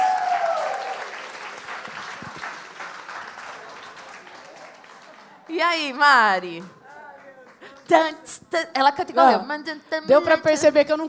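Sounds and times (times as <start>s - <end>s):
applause: 0.0s - 8.2s
speech: 5.6s - 6.8s, 7.9s - 11.0s.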